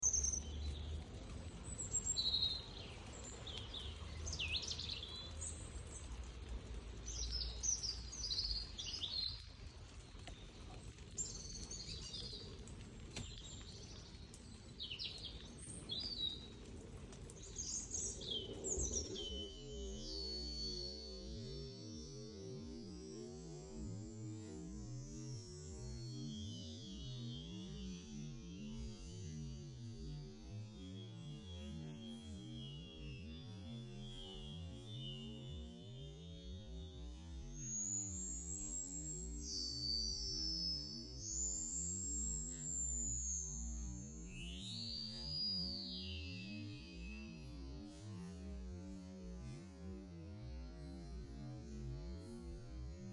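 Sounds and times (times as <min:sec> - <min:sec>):
bird sounds in slow motion: 0:00.0 - 0:23.2, 0:25.2 - 0:49.7
water sounds in slow motion: 0:00.0 - 0:53.1.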